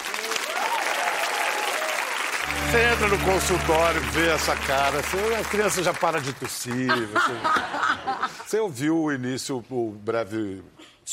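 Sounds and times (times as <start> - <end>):
audience applause: 0.0 - 7.4
speech: 2.7 - 11.1
laughter: 6.7 - 8.5.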